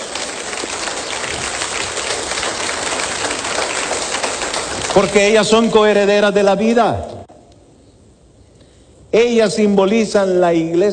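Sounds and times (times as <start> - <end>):
audience applause: 0.0 - 5.4
speech: 5.0 - 7.1, 9.2 - 10.9.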